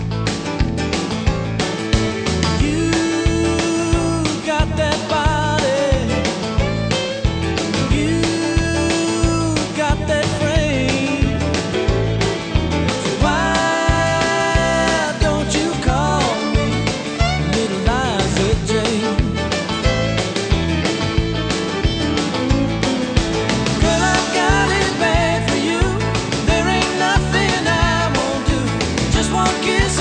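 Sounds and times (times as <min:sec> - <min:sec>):
country music: 0:00.0 - 0:29.9.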